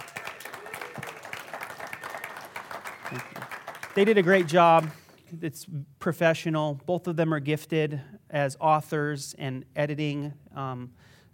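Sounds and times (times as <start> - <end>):
faint cheers: 0.0 - 4.2
audience applause: 0.0 - 5.2
speech: 3.1 - 11.3.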